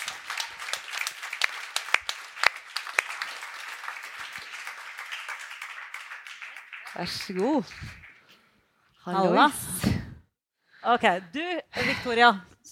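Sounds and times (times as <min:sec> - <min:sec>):
audience applause: 0:00.0 - 0:08.4
speech: 0:07.0 - 0:08.0, 0:09.0 - 0:09.9, 0:10.8 - 0:12.7.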